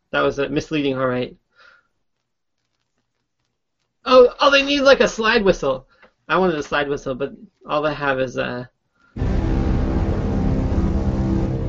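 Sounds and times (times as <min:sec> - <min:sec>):
speech: 0:00.1 - 0:01.4, 0:04.0 - 0:09.3
deep cinematic brass horn blast effect: 0:09.2 - 0:11.6.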